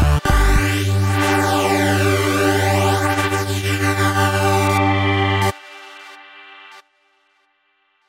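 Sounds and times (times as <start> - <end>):
Roland V-Synth flanged synthesizer factory patch: 0.5 - 6.2.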